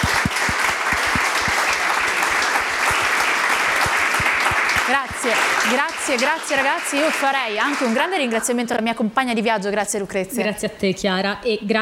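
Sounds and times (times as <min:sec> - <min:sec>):
audience applause: 0:00.0 - 0:08.3
speech: 0:04.9 - 0:11.8.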